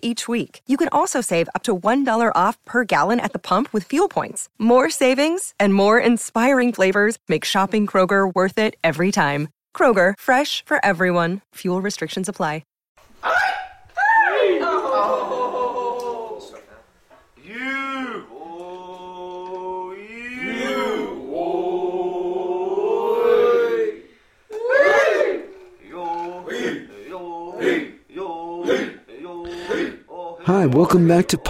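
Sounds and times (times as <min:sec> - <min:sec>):
speech: 0:00.0 - 0:13.4, 0:30.5 - 0:31.4
laughter: 0:14.4 - 0:16.9, 0:30.7 - 0:31.4
traditional Natchez song sung at an annual powwow at the Grand Village in Natchez: 0:17.4 - 0:31.4.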